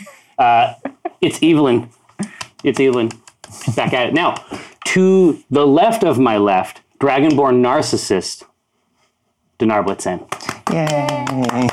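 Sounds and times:
speech: 0:00.4 - 0:02.0, 0:02.6 - 0:08.5, 0:09.6 - 0:11.7
group clapping: 0:02.2 - 0:04.5, 0:10.2 - 0:11.7
person cheering: 0:10.6 - 0:11.7.

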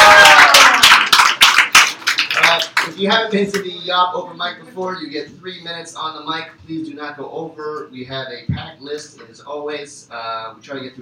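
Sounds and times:
audience round of applause: 0:00.0 - 0:03.0
speech: 0:03.0 - 0:11.0.

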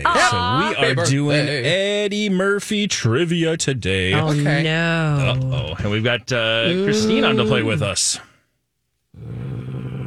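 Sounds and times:
speech: 0:00.0 - 0:08.3
person imitating a cartoon-style throaty growl: 0:06.6 - 0:07.8, 0:09.2 - 0:10.0.

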